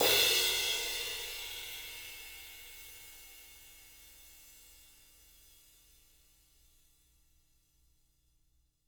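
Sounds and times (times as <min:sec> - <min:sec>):
jazz sizzle crash cymbal: 0:00.0 - 0:01.8.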